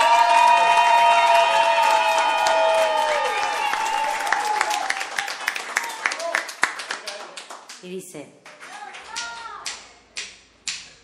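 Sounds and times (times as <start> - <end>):
audience applause greeting a young woman: 0.0 - 7.8.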